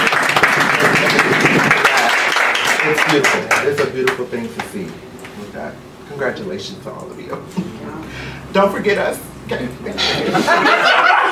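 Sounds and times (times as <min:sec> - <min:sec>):
audience applause: 0:00.0 - 0:04.2
speech: 0:04.0 - 0:11.1
laughter: 0:09.9 - 0:11.3.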